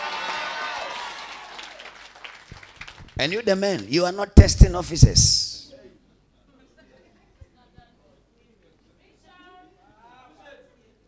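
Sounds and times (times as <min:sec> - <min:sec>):
audience clapping: 0:00.0 - 0:04.2
speech: 0:03.2 - 0:05.5.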